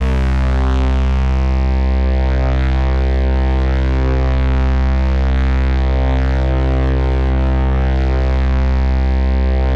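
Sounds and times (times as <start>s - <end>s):
bass: 0.0s - 9.7s.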